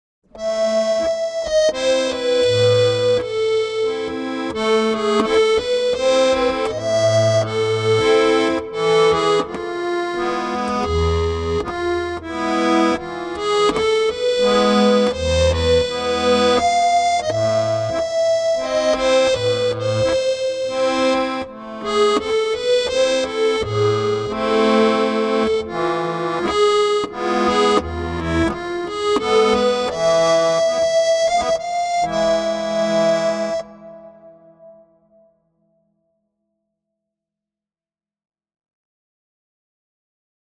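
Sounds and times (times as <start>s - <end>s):
musette music: 0.3s - 35.8s.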